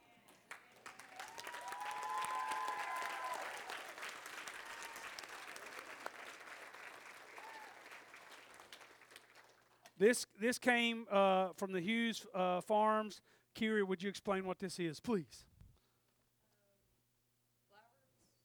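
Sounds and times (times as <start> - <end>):
room full of people clapping: 0.0 - 10.0
faint whoops and whistles: 1.3 - 3.5
speech: 10.0 - 15.5.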